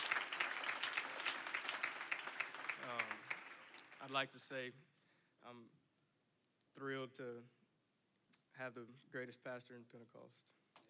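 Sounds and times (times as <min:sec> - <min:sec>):
crowd applauding: 0:00.0 - 0:04.2
speech: 0:04.1 - 0:05.8, 0:06.8 - 0:07.6, 0:08.6 - 0:10.6.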